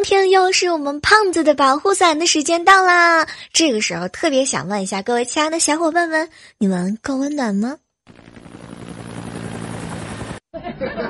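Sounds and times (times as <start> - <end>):
speech: 0.0 - 8.6
helicopter flying: 8.1 - 10.5
laughter: 10.6 - 11.0.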